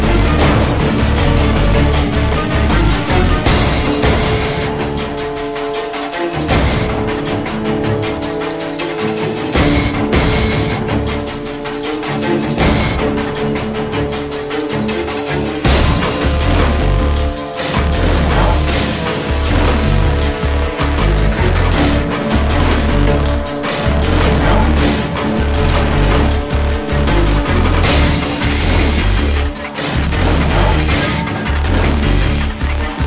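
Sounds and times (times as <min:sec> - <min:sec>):
battle sounds: 0:00.0 - 0:33.0.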